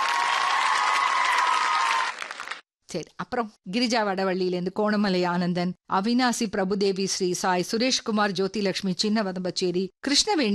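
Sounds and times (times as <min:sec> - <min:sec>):
audience applause for winners of a Tamil radio competition: 0:00.0 - 0:02.6
speech: 0:02.9 - 0:10.5.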